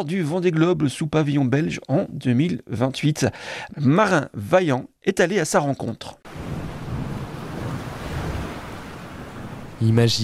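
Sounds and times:
speech: 0:00.0 - 0:06.5, 0:09.8 - 0:10.2
rough sea waves crashing against a boat hull: 0:06.3 - 0:09.8
wind rushing over microphone: 0:06.3 - 0:09.8.

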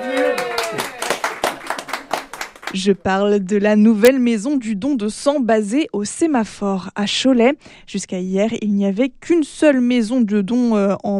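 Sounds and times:
applause at ribbon-cutting of a blood donation centre in Cholet: 0:00.0 - 0:03.0
speech: 0:02.8 - 0:11.1.

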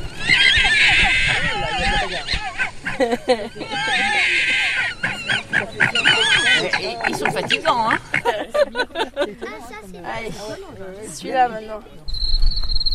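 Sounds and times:
fox cubs calling inside their den: 0:00.0 - 0:08.2
laughter: 0:00.7 - 0:10.7
speech: 0:03.0 - 0:04.4, 0:06.8 - 0:12.0.

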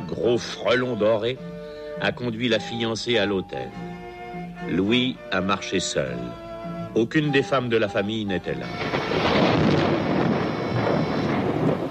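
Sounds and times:
speech: 0:00.1 - 0:03.9, 0:04.6 - 0:09.2
thunder rumbling: 0:08.7 - 0:11.9.

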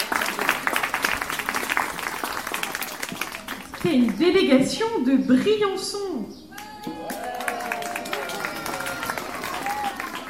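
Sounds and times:
children applauding: 0:00.0 - 0:03.8, 0:06.5 - 0:10.2
speech: 0:03.8 - 0:06.3.

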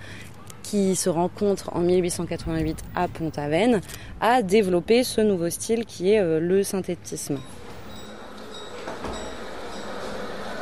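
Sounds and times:
speech: 0:00.7 - 0:07.6
steam trains at a Paris railway station in 1886: 0:07.6 - 0:10.6.

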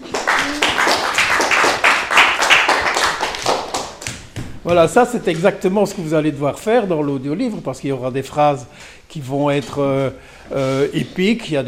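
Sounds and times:
people clapping: 0:00.0 - 0:06.0
speech: 0:04.7 - 0:11.6.

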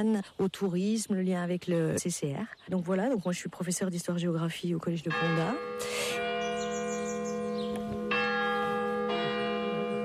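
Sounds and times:
speech: 0:00.0 - 0:06.3
church bell ringing the quarter hour: 0:05.0 - 0:10.0.

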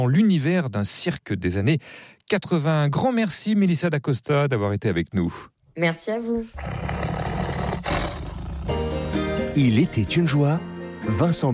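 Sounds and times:
speech: 0:00.0 - 0:06.9, 0:09.6 - 0:11.5
tiger growling: 0:06.5 - 0:09.0.

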